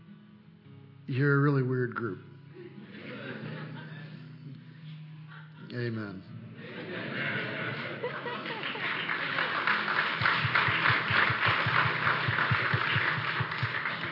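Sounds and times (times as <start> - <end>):
speech: 1.1 - 2.3, 5.7 - 6.4
laughter: 2.6 - 4.4, 6.6 - 14.1
audience applauding: 7.6 - 14.1.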